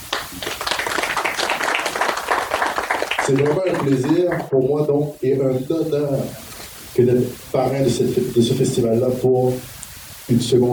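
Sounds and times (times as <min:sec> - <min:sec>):
applause at a festival in Montreal: 0:00.0 - 0:04.5
speech: 0:03.3 - 0:06.4, 0:07.0 - 0:09.7, 0:10.3 - 0:10.7.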